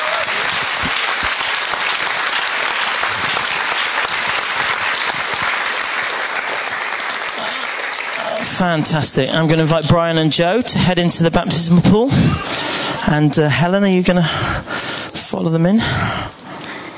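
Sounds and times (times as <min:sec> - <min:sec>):
audience applause: 0:00.0 - 0:10.1
speech: 0:08.6 - 0:14.7, 0:15.3 - 0:16.3.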